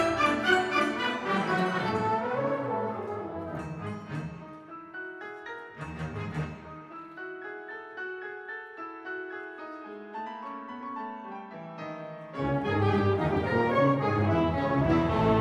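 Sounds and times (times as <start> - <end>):
symphonic band playing: 0.0 - 4.6, 12.4 - 15.3.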